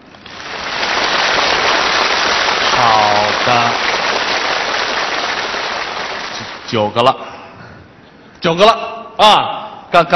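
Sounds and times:
applause: 0:00.0 - 0:06.9
speech: 0:02.8 - 0:03.8, 0:06.7 - 0:07.2, 0:08.4 - 0:10.1.

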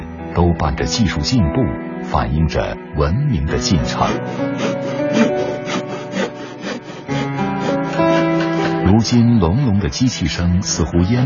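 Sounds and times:
speech: 0:00.4 - 0:05.2, 0:08.9 - 0:11.2
hand saw cutting wood: 0:03.6 - 0:09.3.

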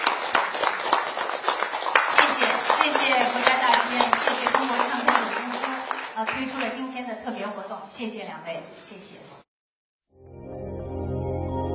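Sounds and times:
audience applause: 0:00.0 - 0:06.8
speech: 0:06.4 - 0:09.4.

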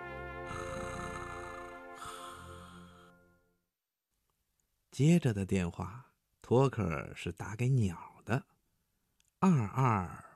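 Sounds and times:
snoring over the telephone: 0:00.5 - 0:03.1
speech: 0:05.0 - 0:08.5, 0:09.4 - 0:10.3.

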